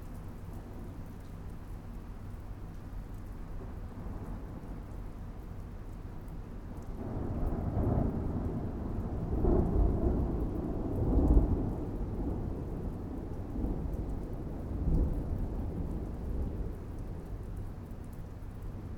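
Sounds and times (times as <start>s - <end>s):
city background noise: 0.0s - 18.9s
thunderstorm: 7.0s - 17.8s.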